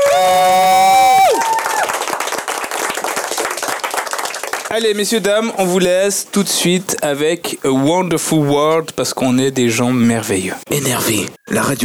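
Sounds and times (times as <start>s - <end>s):
crowd cheering: 0.0s - 4.7s
crowd clapping: 0.0s - 5.3s
speech: 4.7s - 11.8s.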